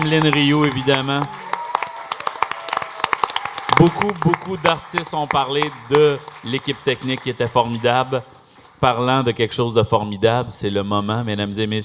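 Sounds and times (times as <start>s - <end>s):
speech: 0.0s - 1.4s, 3.8s - 11.8s
audience applauding: 0.0s - 8.9s.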